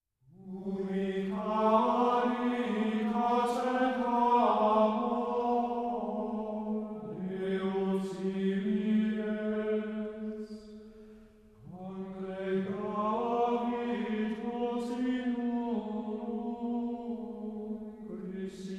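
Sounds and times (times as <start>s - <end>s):
choir singing: 0.4s - 10.9s, 11.6s - 18.7s.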